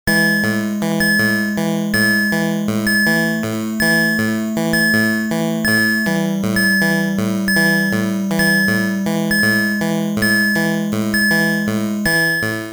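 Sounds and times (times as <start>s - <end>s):
alert sound: 0.1s - 12.6s.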